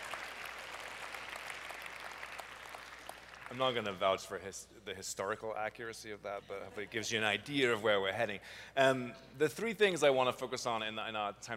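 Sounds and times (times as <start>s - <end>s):
audience clapping: 0.0s - 4.2s
speech: 3.5s - 11.5s.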